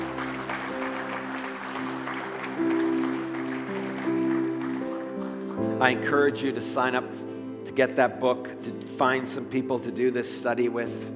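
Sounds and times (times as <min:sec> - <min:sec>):
audience hand clapping: 0:00.0 - 0:06.6
speech: 0:05.8 - 0:11.1.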